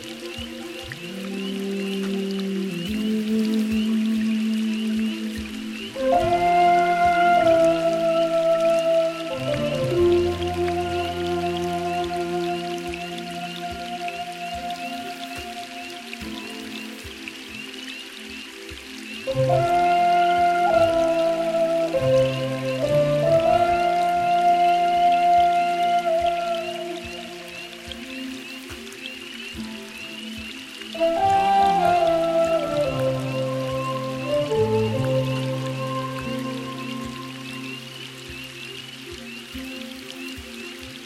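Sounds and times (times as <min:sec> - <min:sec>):
delicate rain: 0:00.0 - 0:41.0.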